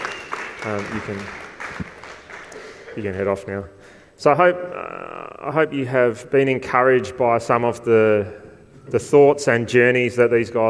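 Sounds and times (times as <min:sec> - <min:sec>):
audience clapping: 0:00.0 - 0:03.1
speech: 0:00.6 - 0:01.4, 0:03.0 - 0:10.6.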